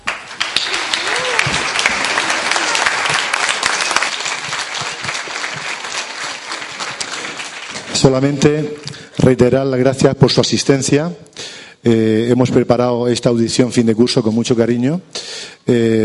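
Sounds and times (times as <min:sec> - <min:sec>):
audience applause: 0:00.0 - 0:09.0
speech: 0:08.0 - 0:11.2, 0:11.8 - 0:16.0.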